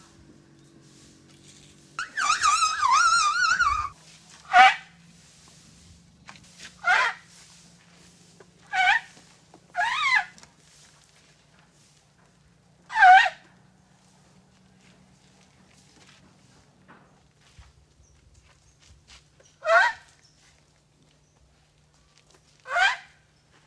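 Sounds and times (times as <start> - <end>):
Asian elephant giving loud rough calls in Thailand: 2.0 - 4.9, 6.8 - 7.4, 8.6 - 10.4, 12.9 - 13.4, 19.6 - 20.1, 22.6 - 23.2.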